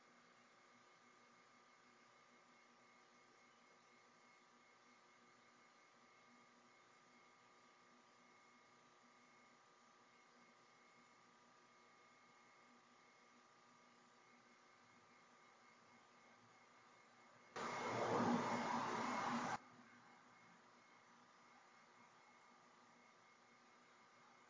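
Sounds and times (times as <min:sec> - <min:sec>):
chapel static noise: 0:17.6 - 0:24.4.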